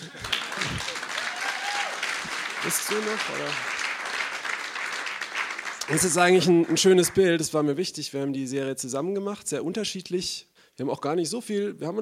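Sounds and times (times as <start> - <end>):
audience applause: 0.0 - 7.5
speech: 2.6 - 3.8, 5.9 - 11.9.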